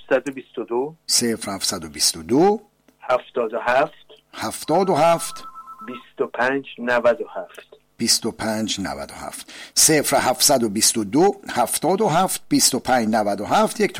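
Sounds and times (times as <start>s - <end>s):
speech: 0.1s - 13.9s
electronic telephone ring: 4.5s - 6.0s.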